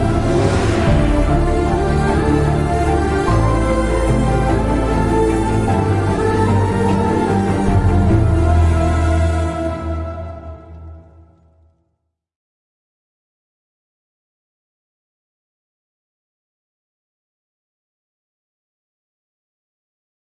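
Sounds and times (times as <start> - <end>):
sad background music ringtone: 0.0 - 11.8.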